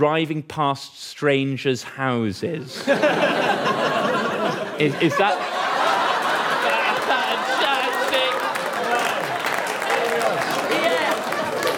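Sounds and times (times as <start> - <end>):
speech: 0.0 - 4.2, 4.8 - 5.5
laughter: 2.6 - 11.7
audience applause: 5.2 - 11.7.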